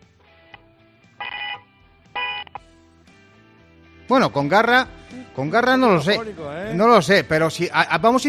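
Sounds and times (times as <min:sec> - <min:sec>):
car horn honking over a phone line: 0:02.2 - 0:02.5
speech: 0:04.1 - 0:08.2.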